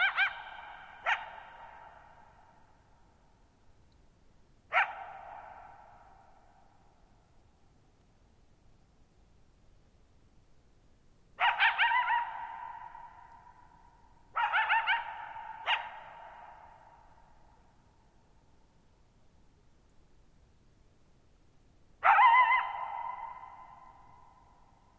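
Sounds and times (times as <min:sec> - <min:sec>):
coyote barking and howling: 0:00.0 - 0:02.6, 0:04.7 - 0:06.4, 0:11.4 - 0:13.7, 0:14.3 - 0:17.1, 0:22.0 - 0:24.5.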